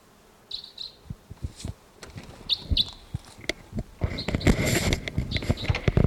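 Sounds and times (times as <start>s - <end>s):
wild bird calling, possibly a crossbill: 0.5s - 1.1s, 2.2s - 6.0s.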